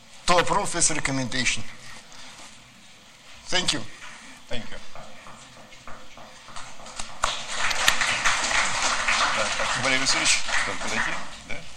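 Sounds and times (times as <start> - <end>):
speech: 0.3 - 1.8, 3.5 - 5.0, 9.4 - 11.3
crowd applause: 5.0 - 11.7.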